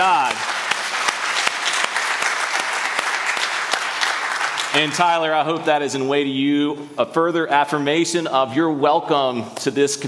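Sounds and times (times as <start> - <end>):
audience clapping: 0.0 - 5.6
speech: 4.7 - 10.0.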